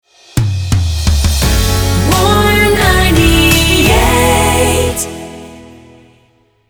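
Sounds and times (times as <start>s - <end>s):
jingle: 1.4s - 6.3s.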